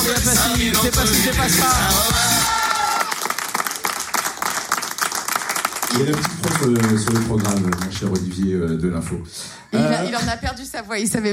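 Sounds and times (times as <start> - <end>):
speech: 0.2 - 2.3, 5.9 - 11.3
audience applause: 2.3 - 8.8.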